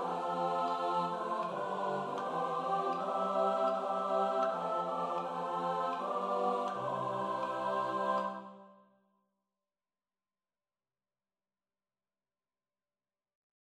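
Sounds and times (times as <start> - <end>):
SATB four-part choir singing: 0.0 - 8.8.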